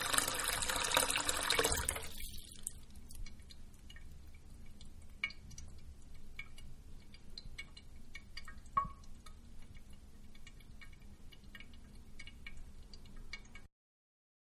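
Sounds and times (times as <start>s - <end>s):
bathroom sink filling with water slowly: 0.0s - 2.8s.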